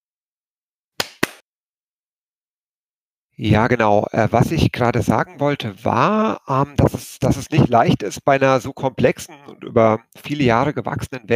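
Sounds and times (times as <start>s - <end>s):
hand clap: 1.0s - 1.4s
speech: 3.4s - 11.3s.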